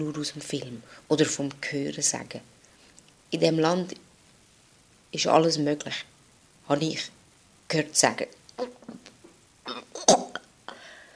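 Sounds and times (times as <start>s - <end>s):
speech: 0.0s - 2.6s, 3.3s - 4.0s, 5.1s - 6.1s, 6.7s - 8.8s
person retching and gagging from a sudden urge to vomit: 8.6s - 10.6s.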